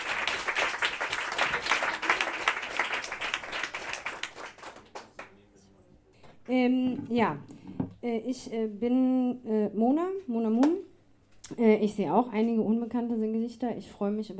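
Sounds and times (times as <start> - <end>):
audience applauding at a live stage event: 0.0 - 5.3
speech: 6.5 - 10.9, 11.5 - 14.3.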